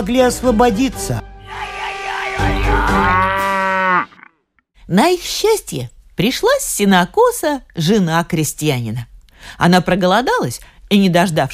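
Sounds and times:
speech: 0.0s - 1.3s, 4.9s - 11.5s
cow mooing: 1.5s - 4.3s.

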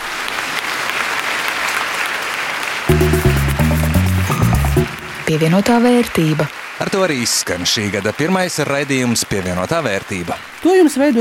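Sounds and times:
applause: 0.0s - 11.1s
speech: 5.3s - 11.1s.

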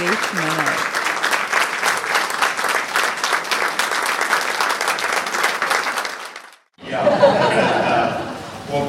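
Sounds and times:
audience applause: 0.0s - 6.7s
laughter: 6.8s - 8.7s.

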